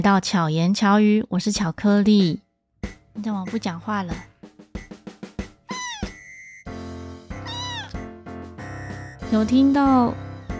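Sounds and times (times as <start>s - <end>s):
speech: 0.0s - 2.4s, 3.2s - 4.3s, 9.3s - 10.2s
cat meowing: 5.7s - 6.2s, 7.4s - 8.0s.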